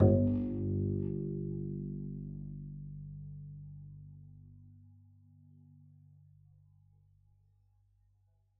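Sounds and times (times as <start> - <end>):
double bass pizzicato on G1: 0.0 - 3.2.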